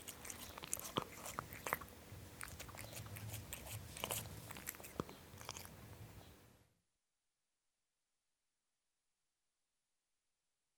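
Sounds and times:
cat drinking milk: 0.0s - 6.1s.

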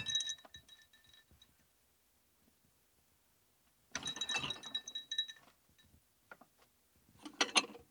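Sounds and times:
plates: 4.0s - 5.6s, 7.2s - 7.8s.

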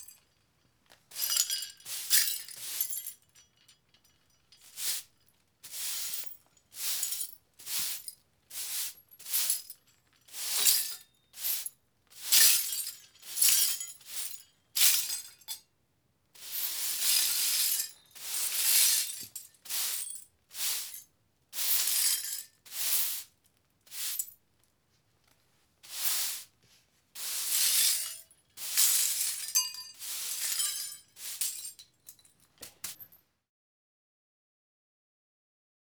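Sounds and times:
broken glass being swept: 1.1s - 15.6s, 16.4s - 21.0s, 21.6s - 23.3s, 23.9s - 24.3s, 25.9s - 26.5s, 27.2s - 31.8s.

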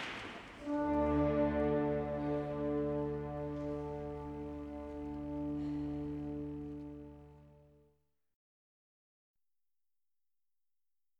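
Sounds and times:
concert in a conservatory: 0.6s - 7.7s.

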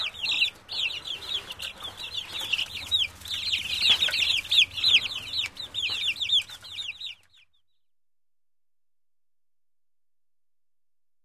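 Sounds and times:
chicks peeping: 0.0s - 7.7s.

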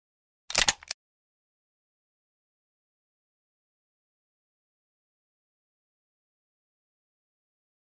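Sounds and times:
stapler: 0.5s - 1.0s.

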